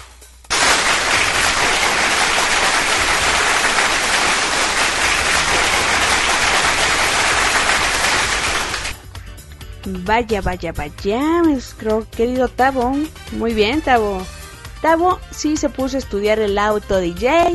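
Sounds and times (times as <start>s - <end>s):
applause for a contestant who has just won a point: 0.5s - 9.0s
speech: 9.9s - 17.5s.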